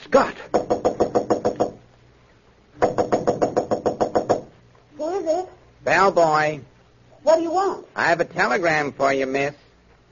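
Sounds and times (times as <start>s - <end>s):
speech: 0.1s - 0.7s, 5.8s - 10.1s
knocking on a hotel room door: 0.5s - 1.8s, 2.8s - 4.6s.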